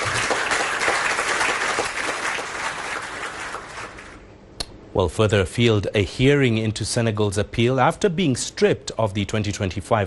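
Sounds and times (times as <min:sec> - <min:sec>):
crowd applause: 0:00.0 - 0:04.2
speech: 0:05.0 - 0:10.0.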